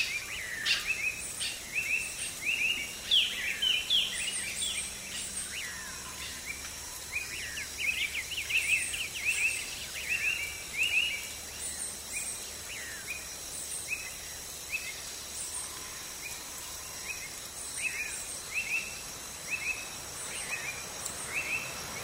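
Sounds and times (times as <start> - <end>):
bird chorus in a tree canopy after rain: 0.0 - 22.0
thin high insect buzz: 0.0 - 22.0.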